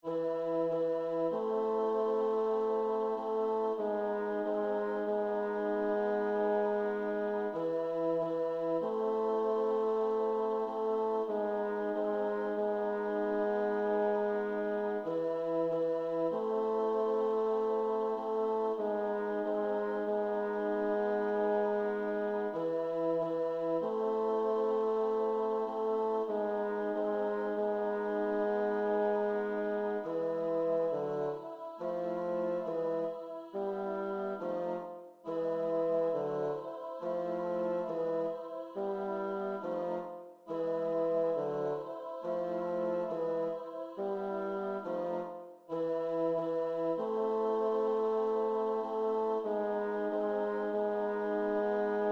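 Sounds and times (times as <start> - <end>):
bass: 0.0 - 52.0.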